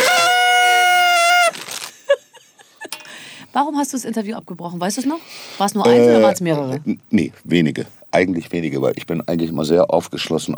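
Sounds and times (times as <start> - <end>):
toot of a horn sound effect: 0.0 - 1.5
speech: 3.6 - 10.5.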